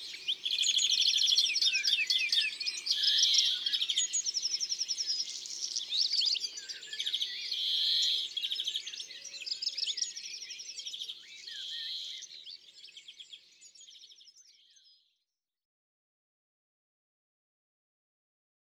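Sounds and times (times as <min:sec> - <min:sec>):
European greenfinch singing: 0:00.0 - 0:13.2.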